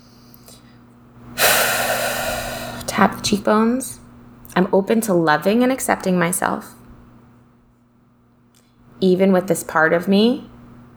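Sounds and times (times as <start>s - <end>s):
deep breath during a tapping exercise: 1.4s - 3.2s
speech: 3.0s - 4.0s, 4.6s - 6.8s, 9.0s - 10.5s.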